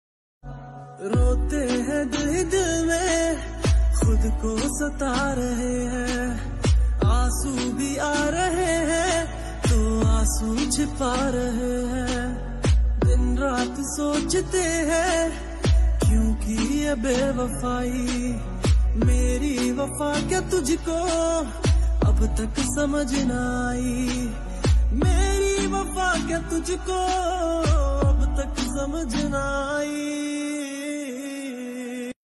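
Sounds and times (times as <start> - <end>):
sad instrumental background music ringtone: 0.4 - 31.8.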